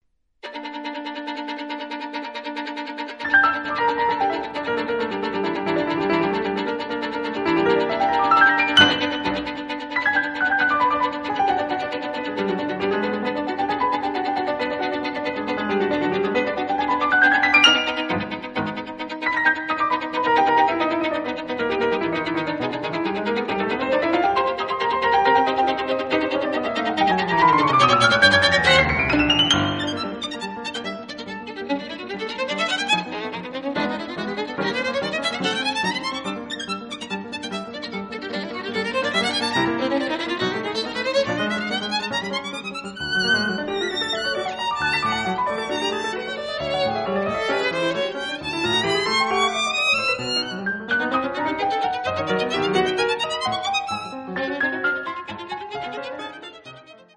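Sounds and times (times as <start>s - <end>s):
violin and piano sonata: 0.4s - 57.1s.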